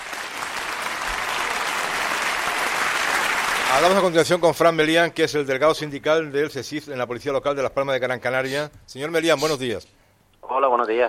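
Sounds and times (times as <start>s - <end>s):
audience applause: 0.0s - 4.3s
speech: 3.7s - 11.0s.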